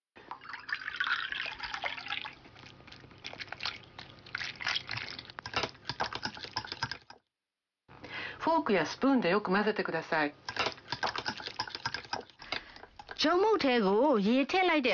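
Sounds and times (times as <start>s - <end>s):
100 ml of water poured into flour for a dough: 0.2s - 7.2s
speech: 8.4s - 10.4s, 13.2s - 14.9s.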